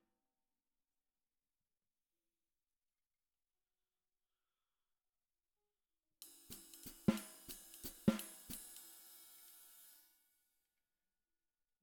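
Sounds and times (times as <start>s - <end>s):
snare drum: 6.3s - 10.1s.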